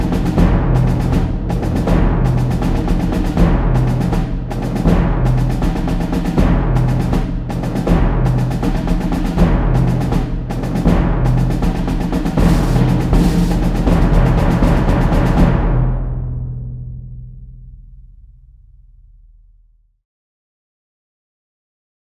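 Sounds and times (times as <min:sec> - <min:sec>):
military drums: 0:00.0 - 0:17.2.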